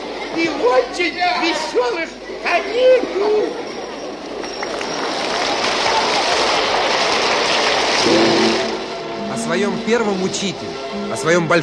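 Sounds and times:
speech: 0.4 - 3.6, 9.4 - 11.6
audience applause in a circus arena: 3.1 - 9.2.

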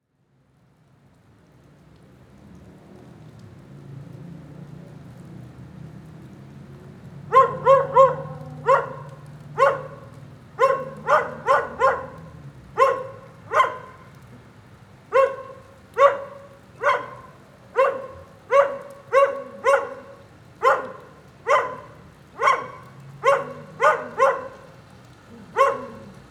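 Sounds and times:
light rain: 0.0 - 26.2
dog barking: 7.2 - 14.4, 15.0 - 26.2.

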